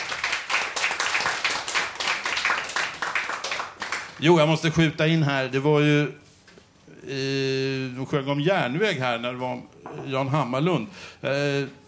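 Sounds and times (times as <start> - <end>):
audience applause: 0.0 - 4.1
speech: 4.2 - 6.2, 7.1 - 11.8.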